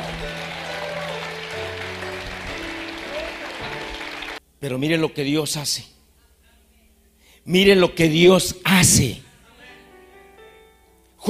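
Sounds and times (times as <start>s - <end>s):
audience applause: 0.0s - 4.4s
speech: 4.6s - 6.0s, 7.4s - 9.2s.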